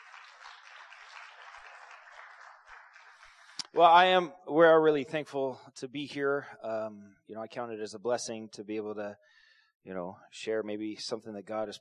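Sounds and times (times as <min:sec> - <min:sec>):
crowd applause: 0:00.0 - 0:03.6
speech: 0:03.7 - 0:11.8.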